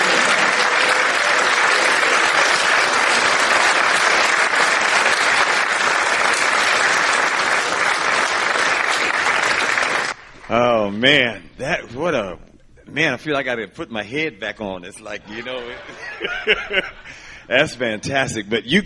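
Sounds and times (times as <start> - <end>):
audience applause welcoming a guest: 0.0 - 10.5
speech: 10.9 - 18.8
laughter: 15.2 - 17.5.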